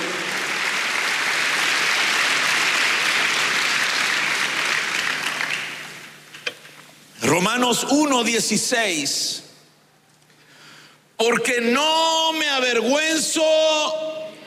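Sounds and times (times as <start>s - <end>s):
audience applause: 0.0s - 6.1s
speech: 7.7s - 9.4s, 11.2s - 14.2s.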